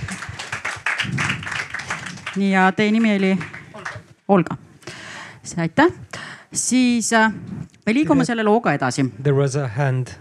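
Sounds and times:
audience applause: 0:00.0 - 0:04.1
speech: 0:02.4 - 0:03.5, 0:04.3 - 0:04.6, 0:05.5 - 0:10.1.

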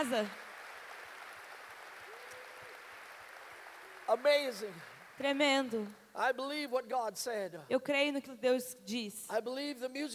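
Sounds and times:
speech: 0:00.0 - 0:00.4, 0:04.1 - 0:10.1
audience applause: 0:00.0 - 0:05.9.

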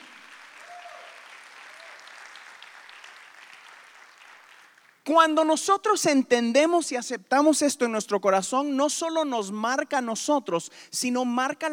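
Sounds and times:
audience applauding: 0:00.0 - 0:05.0
speech: 0:05.0 - 0:11.7.

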